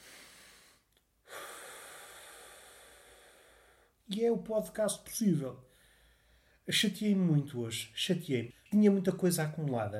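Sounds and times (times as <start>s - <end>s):
deep breath: 0.0s - 4.0s, 5.7s - 6.6s
speech: 4.1s - 5.7s, 6.7s - 9.9s.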